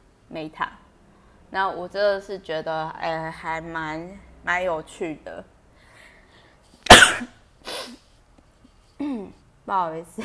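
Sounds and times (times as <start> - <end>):
speech: 0.4 - 0.8, 1.5 - 5.5, 9.7 - 10.2
person sneezing: 6.8 - 8.1.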